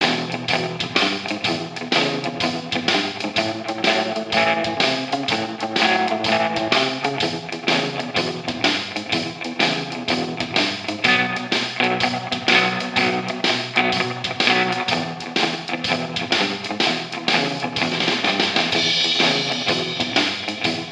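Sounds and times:
rockabilly music from a jukebox: 0.0s - 20.9s.

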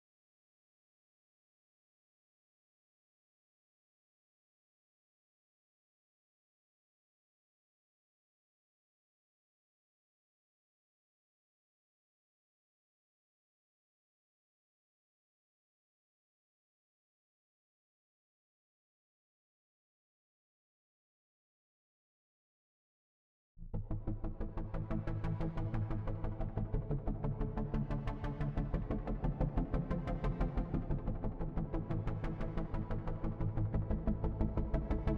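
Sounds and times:
bass: 23.6s - 35.1s.

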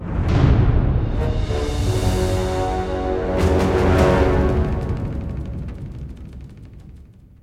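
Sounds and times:
losing game music: 1.2s - 6.5s.

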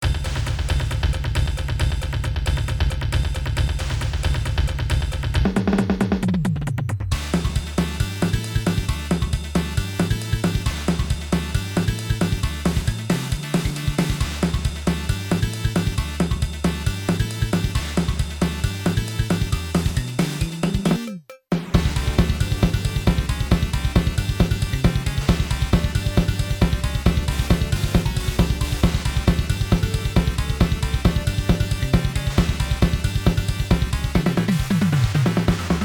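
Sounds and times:
broken beats: 0.0s - 35.8s.

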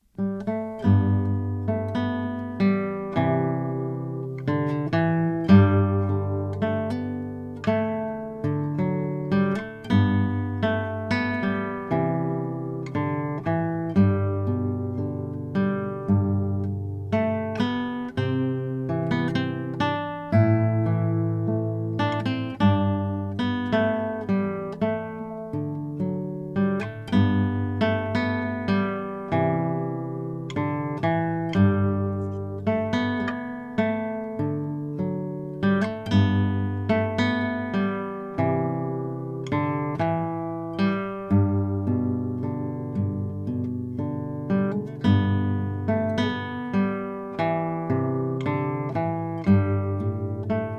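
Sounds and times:
guitar: 0.0s - 50.7s.

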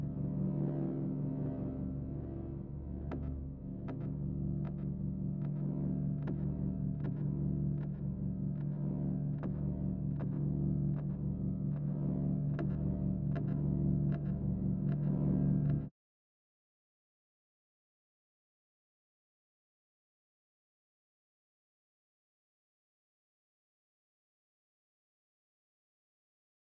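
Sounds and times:
bass: 0.0s - 15.9s.

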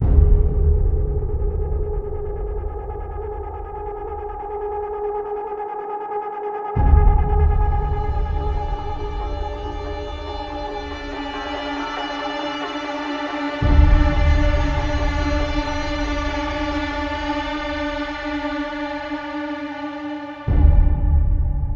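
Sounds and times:
suspense one-shot: 0.0s - 5.1s, 6.8s - 11.9s, 13.5s - 19.1s, 20.5s - 21.7s.

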